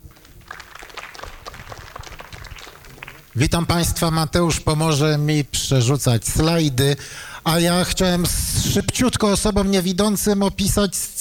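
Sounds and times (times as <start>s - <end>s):
audience applause: 0.0s - 3.5s
speech: 3.4s - 11.2s.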